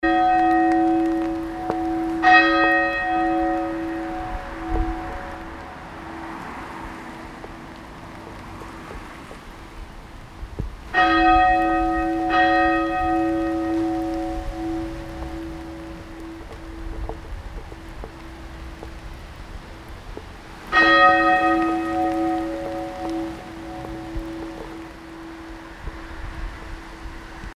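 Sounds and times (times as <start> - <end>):
church bells tolling: 0.0 - 6.2, 10.9 - 19.2, 20.7 - 27.5.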